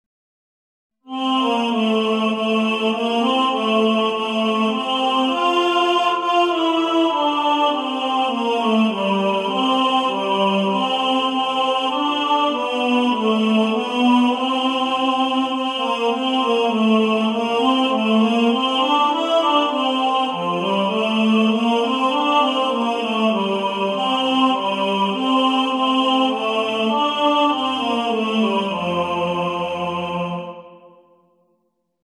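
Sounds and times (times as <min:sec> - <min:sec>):
tenor singing: 0:01.1 - 0:31.1.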